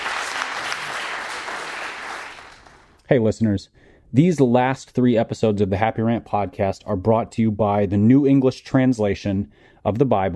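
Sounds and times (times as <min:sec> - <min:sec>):
audience applause: 0:00.0 - 0:02.9
speech: 0:03.1 - 0:10.3.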